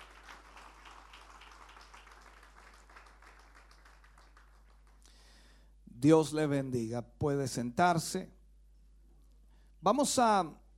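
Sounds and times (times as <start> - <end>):
church service audience applauding in praise of the Lord: 0.0 - 5.1
speech: 6.0 - 8.4, 9.8 - 10.6.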